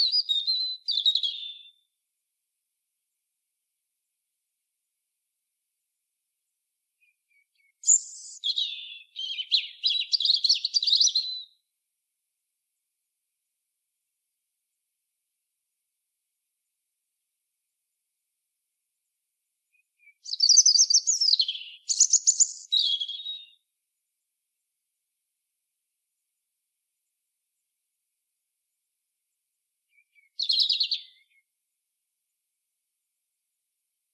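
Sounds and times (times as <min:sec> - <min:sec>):
European robin singing: 0:00.0 - 0:01.9, 0:07.0 - 0:11.6, 0:19.7 - 0:23.6, 0:29.9 - 0:31.5.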